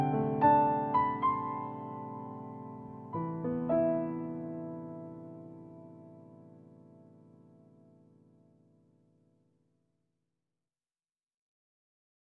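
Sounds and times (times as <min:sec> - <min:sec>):
piano: 0:00.0 - 0:09.5.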